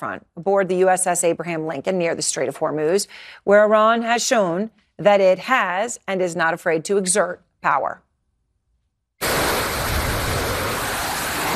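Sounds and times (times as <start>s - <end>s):
speech: 0.0s - 8.0s
fighter jets taking off from the USS Abraham Lincoln: 9.2s - 11.5s.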